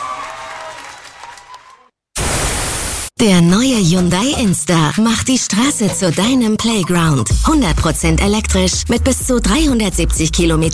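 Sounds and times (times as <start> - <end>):
applause: 0.0 - 1.9
speech: 3.2 - 10.7.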